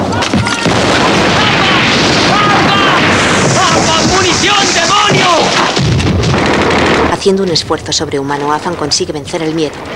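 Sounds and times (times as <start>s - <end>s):
grenade exploding in the street: 0.0s - 7.4s
speech: 7.2s - 9.9s.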